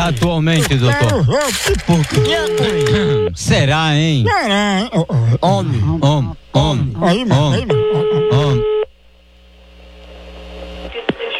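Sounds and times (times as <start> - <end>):
laughter: 0.0 - 3.3, 4.1 - 8.8
speech: 0.0 - 8.7
low hum: 0.0 - 10.9
telephone ringing tone as a call is placed: 1.9 - 3.4, 7.0 - 8.9.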